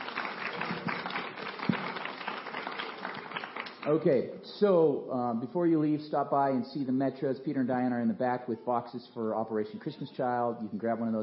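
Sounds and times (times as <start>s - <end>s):
audience applause: 0.0s - 3.9s
speech: 3.9s - 11.2s.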